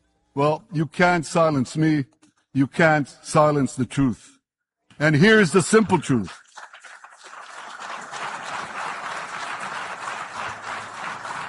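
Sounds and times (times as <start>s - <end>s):
speech: 0.4s - 4.4s, 5.0s - 6.4s
audience applause in played recording: 6.4s - 11.4s.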